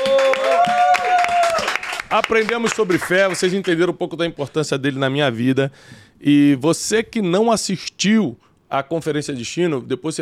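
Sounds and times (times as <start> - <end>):
sustained vocal cheer or whoop: 0.0 - 1.8
crowd applauding: 0.0 - 3.8
speech: 2.1 - 10.1.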